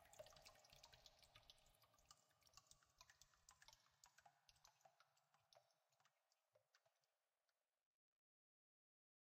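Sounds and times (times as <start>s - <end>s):
water dripping: 0.0s - 7.6s.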